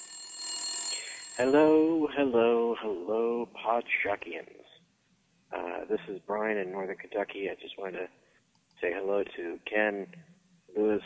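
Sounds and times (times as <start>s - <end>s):
telephone ringing from a public call box: 0.0s - 1.8s
speech: 1.4s - 4.7s, 5.5s - 8.2s, 8.8s - 11.0s.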